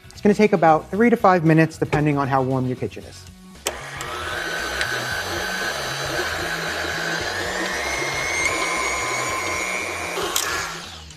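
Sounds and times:
speech: 0.2 - 3.4
stand mixer with paddle attachment creaming butter and sugar: 3.7 - 11.1.

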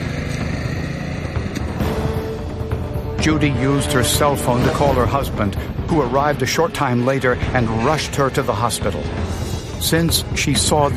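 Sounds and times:
moped engine: 0.0 - 5.1
speech: 3.2 - 10.9.

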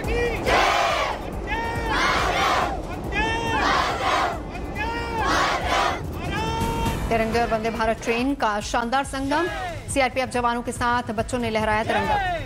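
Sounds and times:
crowd chanting slogans: 0.0 - 7.0
speech: 7.2 - 12.3.

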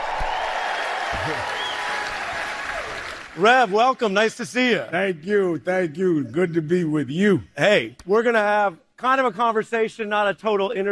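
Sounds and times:
audience cheering and applauding at a live event: 0.0 - 4.0
speech: 1.2 - 1.5, 3.4 - 10.9.

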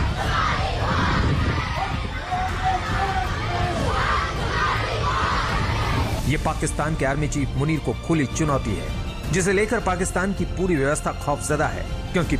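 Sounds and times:
protest crowd shouting in streets: 0.0 - 6.2
speech: 6.3 - 12.3.

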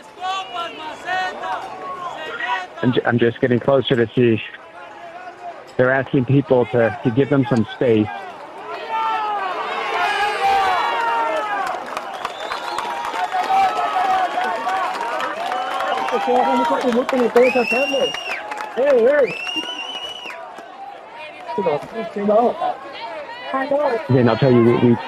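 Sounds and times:
speech: 2.7 - 4.6, 5.8 - 8.2, 16.2 - 19.8, 21.6 - 22.7, 23.5 - 25.0
crowd applauding and cheering: 4.9 - 23.4.

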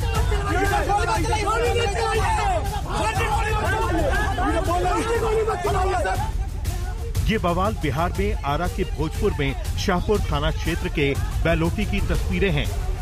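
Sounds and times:
crowd screaming and shouting during police clash: 0.0 - 7.1, 10.8 - 12.9
speech: 7.3 - 12.9.

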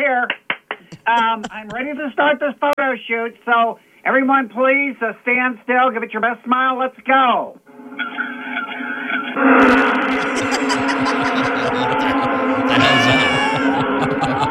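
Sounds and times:
laughter: 0.9 - 2.0, 8.0 - 14.4
speech: 1.1 - 7.6
voice imitating students stung by yellowjackets: 10.0 - 14.4.

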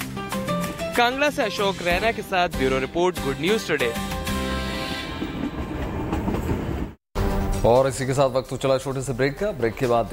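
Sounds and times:
train running through the hills near Kangra: 0.5 - 7.0
speech: 1.0 - 4.1, 7.6 - 10.1.

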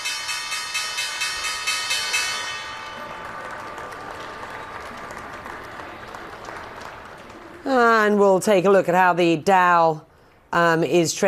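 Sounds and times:
stock exchange opening bell ringing: 0.0 - 3.4
speech: 7.7 - 11.2.

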